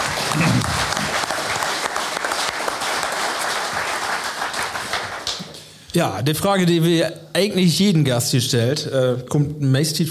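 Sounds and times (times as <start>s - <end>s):
audience applause: 0.0s - 5.6s
speech: 6.0s - 10.0s.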